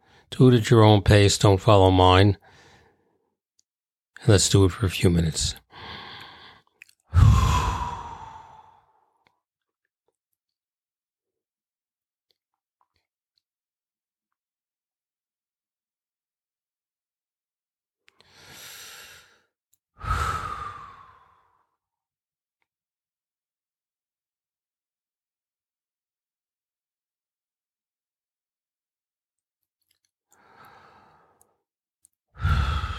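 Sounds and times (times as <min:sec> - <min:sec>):
speech: 0:00.3 - 0:02.5, 0:04.2 - 0:05.9
person exhaling in a breath-hold exercise: 0:05.7 - 0:09.1, 0:18.2 - 0:21.7, 0:30.4 - 0:31.5, 0:32.4 - 0:32.9.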